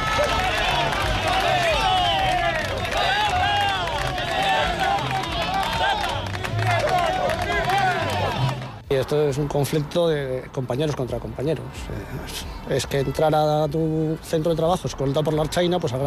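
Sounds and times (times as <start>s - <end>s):
ironic applause: 0.0s - 8.8s
workers shouting and jeering: 0.0s - 8.8s
speech: 9.1s - 16.0s.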